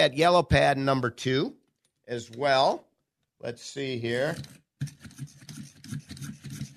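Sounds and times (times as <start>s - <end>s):
speech: 0.0s - 5.4s
Boston hand-crank pencil sharpener sharpening a pencil: 4.3s - 6.7s.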